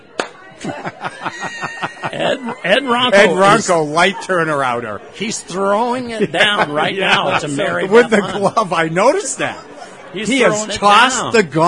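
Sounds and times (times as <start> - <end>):
hands clapping: 0.2 - 0.4
laughter: 0.5 - 4.0, 5.6 - 11.1
speech: 0.6 - 11.6.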